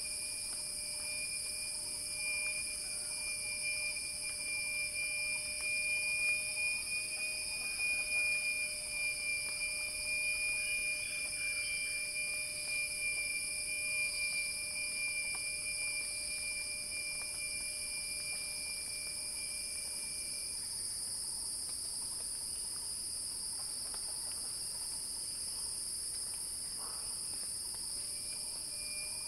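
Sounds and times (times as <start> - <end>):
thin sustained whistle tone: 0.0 - 20.7, 28.0 - 29.2
cicada chorus buzzing: 0.0 - 23.0, 23.6 - 29.2.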